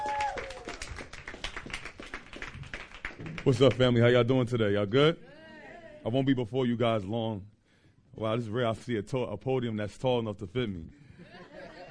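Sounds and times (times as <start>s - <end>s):
audience applause: 0.0s - 3.9s
speech: 3.4s - 5.3s, 6.0s - 7.5s, 8.2s - 11.0s
laughter: 11.0s - 11.9s.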